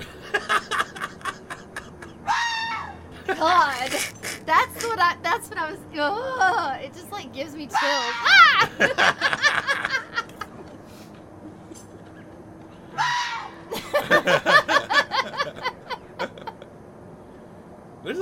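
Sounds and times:
laughter: 0:00.0 - 0:02.2, 0:03.1 - 0:05.0, 0:08.3 - 0:10.7, 0:13.7 - 0:16.7
fox screaming: 0:02.2 - 0:03.0, 0:07.7 - 0:08.6, 0:12.9 - 0:13.7
speech: 0:03.4 - 0:09.7.

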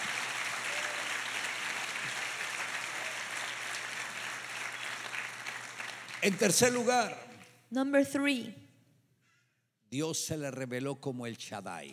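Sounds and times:
audience applauding: 0:00.0 - 0:07.5
speech: 0:06.2 - 0:08.6, 0:09.9 - 0:11.9.

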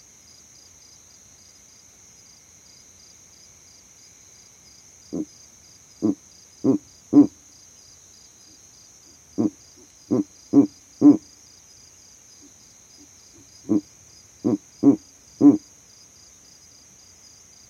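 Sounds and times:
constant cricket-like whine: 0:00.0 - 0:17.6
Verreaux's eagle owl hooting: 0:06.0 - 0:07.4, 0:09.4 - 0:11.3, 0:13.4 - 0:15.6.

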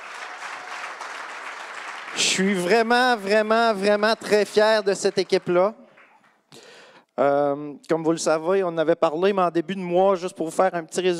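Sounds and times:
audience applause: 0:00.0 - 0:05.8
speech: 0:02.1 - 0:05.8, 0:07.2 - 0:11.1.

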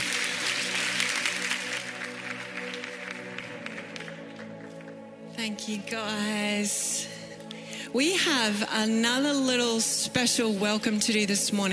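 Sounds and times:
church congregation applauding a family: 0:00.0 - 0:05.2
speech: 0:05.4 - 0:07.1, 0:07.9 - 0:11.7.

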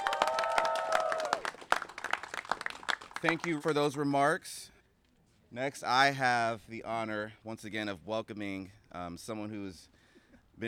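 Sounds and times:
audience applauding a group: 0:00.0 - 0:03.6
speech: 0:03.2 - 0:04.7, 0:05.5 - 0:10.0.

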